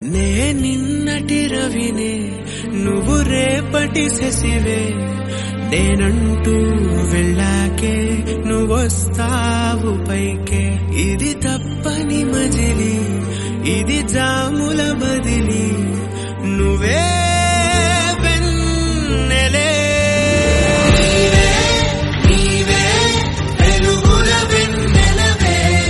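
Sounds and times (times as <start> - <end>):
Telugu song: 0.0 - 25.8.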